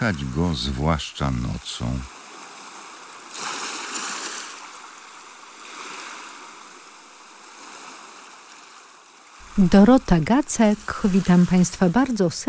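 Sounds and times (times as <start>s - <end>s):
speech: 0.0s - 2.2s, 9.6s - 12.4s
water splashing against pier and ship hull: 0.0s - 12.4s.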